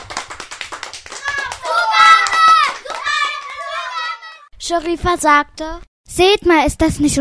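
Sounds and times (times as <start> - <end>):
hands clapping: 0.0 - 4.4
speech: 4.7 - 7.1.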